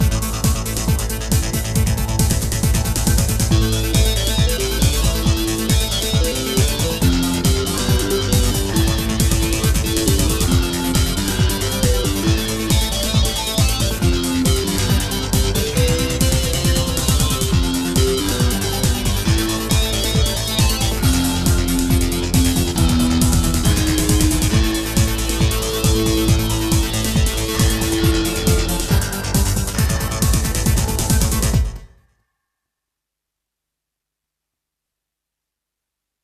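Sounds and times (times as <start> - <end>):
techno music: 0.0 - 31.9.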